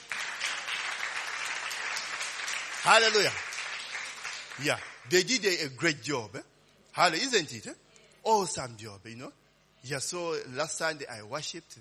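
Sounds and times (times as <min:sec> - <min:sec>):
church congregation clapping for the worship team: 0:00.0 - 0:05.5
speech: 0:02.8 - 0:03.4, 0:04.6 - 0:11.7.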